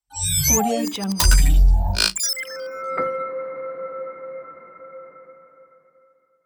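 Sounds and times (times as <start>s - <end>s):
glitchy logo sound: 0.2s - 2.7s.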